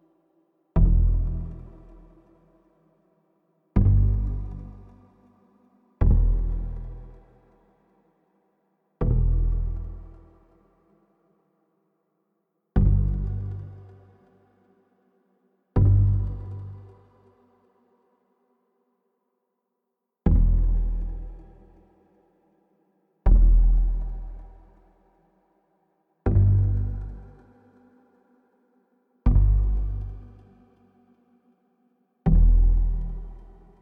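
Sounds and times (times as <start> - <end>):
bass: 0.7 - 2.8, 3.7 - 8.0, 9.0 - 11.0, 12.7 - 14.8, 15.7 - 17.8, 20.2 - 22.2, 23.2 - 25.3, 26.2 - 28.2, 29.2 - 31.2, 32.2 - 33.7.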